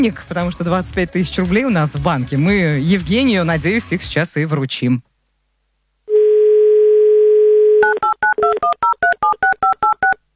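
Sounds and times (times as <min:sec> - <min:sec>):
speech: 0:00.0 - 0:05.1
telephone dial tone: 0:06.1 - 0:10.2
two-tone keypad beeps dialing a phone number: 0:07.8 - 0:10.2.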